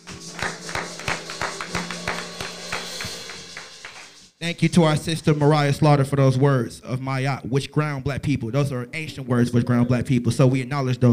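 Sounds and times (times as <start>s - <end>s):
hand clapping: 0.0s - 4.3s
speech: 4.4s - 11.1s.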